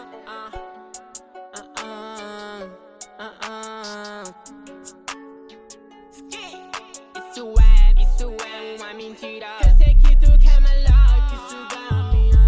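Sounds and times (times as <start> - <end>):
deep bass: 7.6 - 8.4, 9.6 - 12.4.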